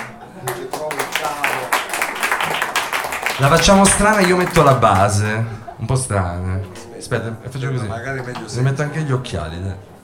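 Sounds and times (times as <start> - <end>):
audience applause: 0.0 - 5.5
speech: 3.4 - 9.9.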